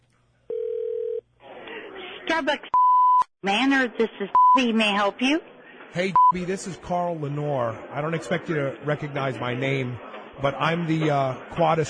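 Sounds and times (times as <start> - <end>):
telephone dial tone: 0.5 - 1.2
speech: 2.3 - 2.8, 3.4 - 11.8.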